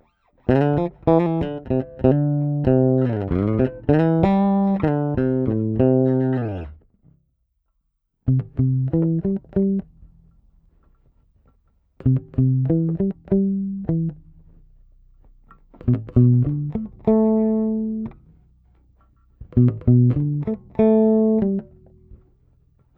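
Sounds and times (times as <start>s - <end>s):
blues lead playing: 0.5s - 6.8s, 8.3s - 10.1s, 12.0s - 14.6s, 15.7s - 18.4s, 19.4s - 22.2s.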